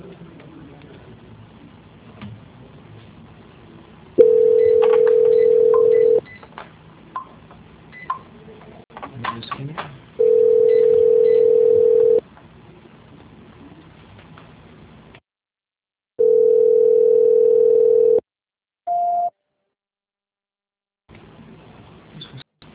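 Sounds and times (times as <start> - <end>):
telephone line tones during a call transfer: 4.2 - 6.2, 10.2 - 12.2, 16.2 - 18.2.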